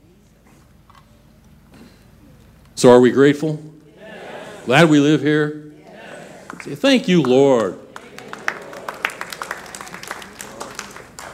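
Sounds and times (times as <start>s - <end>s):
speech: 2.8s - 3.8s, 4.7s - 5.7s, 6.6s - 7.8s
laughter: 3.9s - 5.2s, 5.8s - 11.2s
audience clapping: 6.0s - 11.3s.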